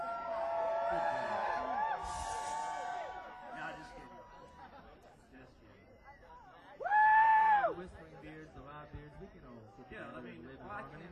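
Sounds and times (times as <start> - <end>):
festival crowd yelling and screaming: 0.0 - 4.5, 6.8 - 7.8.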